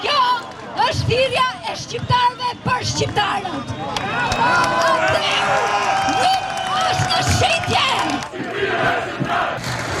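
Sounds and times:
protesters in Tirana roaring and shouting: 0.0s - 9.9s
speech: 0.9s - 6.4s
protesters chanting in Tirana: 7.1s - 9.9s.

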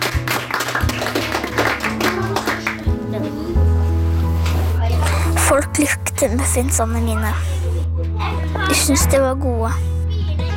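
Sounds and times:
clapping: 0.0s - 3.0s
low music tones: 0.0s - 10.5s
speech: 5.8s - 7.6s, 8.7s - 10.0s.

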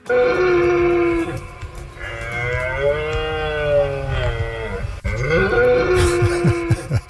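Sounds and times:
red deer stag roaring during rut: 0.0s - 7.0s
laughter: 3.7s - 7.0s.

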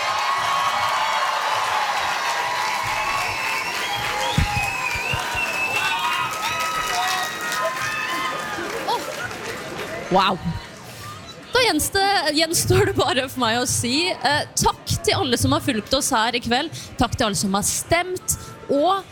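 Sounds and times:
large audience applause: 0.0s - 10.1s
whoops and shouts: 2.5s - 9.1s
speech: 10.1s - 10.6s, 11.7s - 19.0s.

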